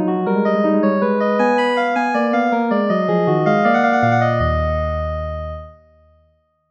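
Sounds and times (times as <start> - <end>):
prelude in pythagorean tuning: 0.1 - 6.3.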